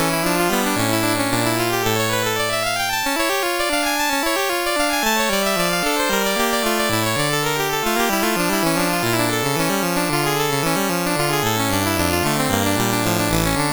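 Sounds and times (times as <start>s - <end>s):
sonata movement on a MOS6581R2 sound chip: 0.0s - 13.7s.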